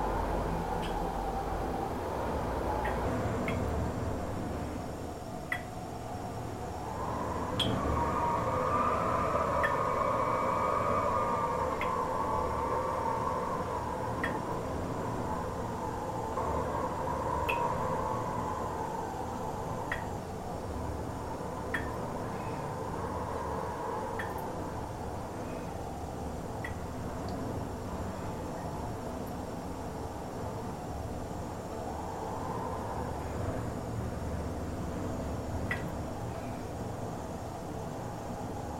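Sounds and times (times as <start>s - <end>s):
rain: 0.0s - 38.7s
wind heard from inside a bathroom by a road in Paracas: 0.0s - 38.7s.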